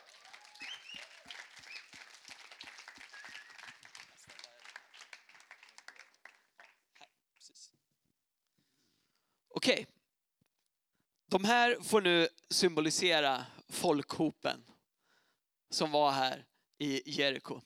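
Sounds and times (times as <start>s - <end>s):
audience applause: 0.0s - 6.8s
speech: 9.6s - 9.9s, 11.3s - 14.7s, 15.7s - 17.6s.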